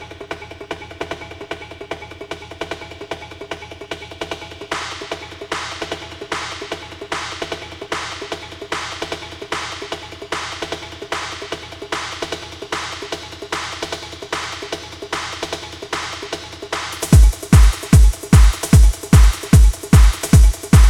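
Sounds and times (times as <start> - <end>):
music beat drop: 4.7 - 20.8.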